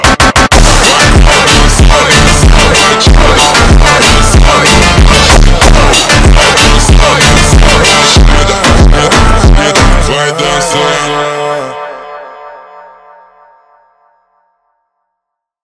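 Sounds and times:
super slowed funk music: 0.0s - 10.7s.

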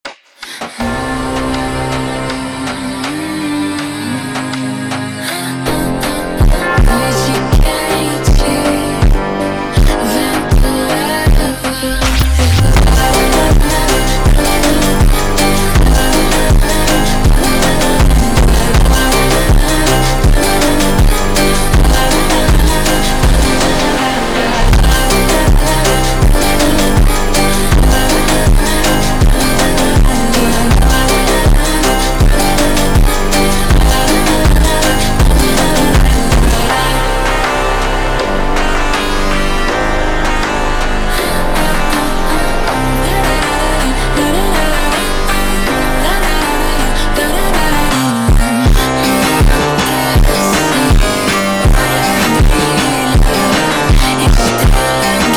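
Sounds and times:
super slowed funk music: 0.8s - 55.3s.

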